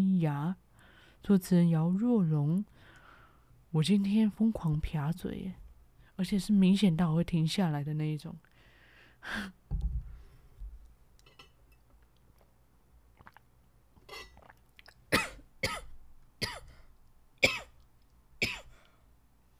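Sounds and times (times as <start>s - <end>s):
speech: 0.2s - 0.6s, 1.2s - 2.8s, 3.7s - 5.6s, 6.2s - 8.5s, 9.2s - 9.9s
harsh dry coughs: 15.1s - 16.8s, 17.4s - 17.7s, 18.4s - 18.8s.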